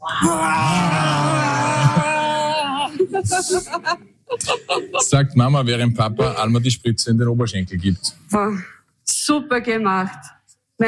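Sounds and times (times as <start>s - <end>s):
people roaring like a bear: 0.0s - 3.2s
laughter: 0.1s - 7.8s
speech: 0.2s - 0.8s, 3.2s - 10.8s.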